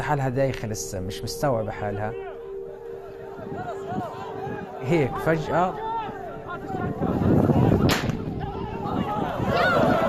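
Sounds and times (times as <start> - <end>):
speech: 0.1 - 2.3, 3.5 - 4.2, 4.8 - 5.9
murmur of voices and commotion of a noisy protest crowd: 1.3 - 10.0
single gunshot at a protest after tear gas was fired: 7.9 - 8.2.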